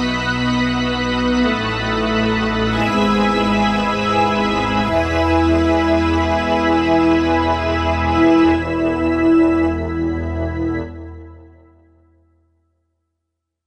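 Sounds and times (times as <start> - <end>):
church organ patch on a Roland SC-880 sound module: 0.0 - 12.0.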